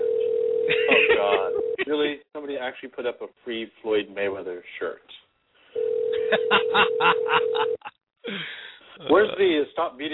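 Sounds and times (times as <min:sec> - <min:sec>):
telephone dial tone: 0:00.0 - 0:00.7, 0:01.4 - 0:01.8, 0:05.8 - 0:07.8
laughter: 0:00.7 - 0:01.9, 0:06.2 - 0:07.9
speech: 0:01.9 - 0:05.2, 0:06.3 - 0:10.1.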